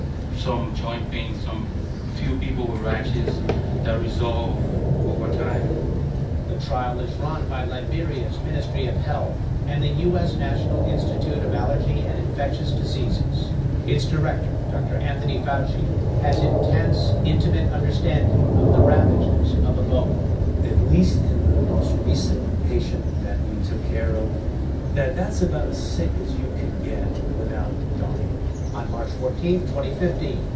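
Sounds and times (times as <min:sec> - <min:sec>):
aircraft noise: 0:00.0 - 0:30.5.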